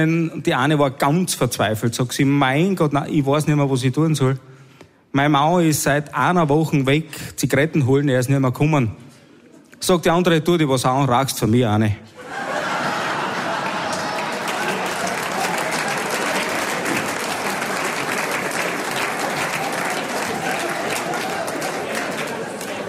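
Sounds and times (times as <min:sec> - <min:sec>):
speech: 0:00.0 - 0:09.0, 0:09.8 - 0:12.4
laughter: 0:12.2 - 0:14.8
audience clapping: 0:12.4 - 0:22.8.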